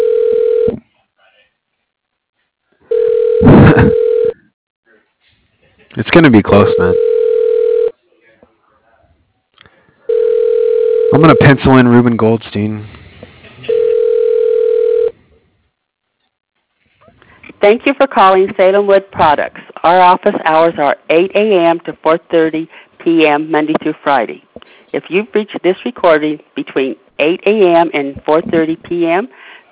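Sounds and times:
telephone ringback tones: 0.0s - 0.8s, 2.9s - 4.4s, 6.6s - 7.9s, 10.1s - 11.6s, 13.6s - 15.2s
speech: 6.0s - 7.1s, 11.2s - 12.9s, 17.6s - 29.7s.

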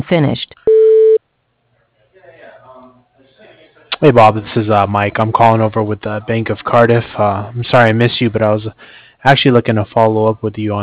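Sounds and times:
speech: 0.1s - 0.4s, 4.0s - 10.8s
voicemail beep: 0.7s - 1.2s.

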